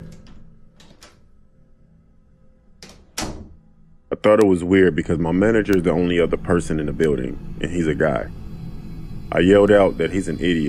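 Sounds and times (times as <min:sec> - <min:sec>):
bathroom door opening: 0:00.0 - 0:01.4, 0:02.8 - 0:03.6
speech: 0:04.2 - 0:08.4, 0:09.3 - 0:10.6.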